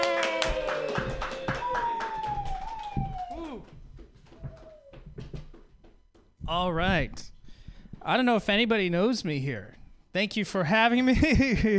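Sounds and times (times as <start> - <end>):
open mic comedy audience whooping and cheering: 0.0 - 3.8
open mic comedy audience clapping: 0.0 - 4.8
speech: 6.5 - 7.4, 8.0 - 11.7.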